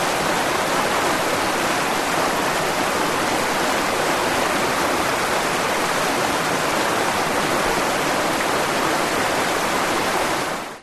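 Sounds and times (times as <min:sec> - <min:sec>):
small multi-step waterfall in nature: 0:00.0 - 0:10.8.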